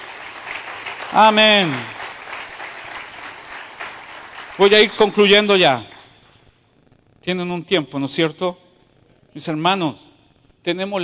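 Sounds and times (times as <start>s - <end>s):
audience applauding: 0.0s - 6.5s
speech: 1.1s - 2.0s, 4.6s - 5.9s, 7.2s - 8.6s, 9.3s - 11.0s.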